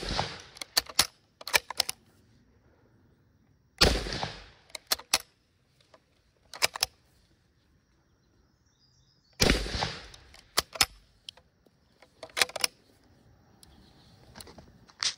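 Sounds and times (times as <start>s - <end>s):
Lebel rifle firing: 0.0s - 1.8s, 3.8s - 5.3s, 9.4s - 11.0s.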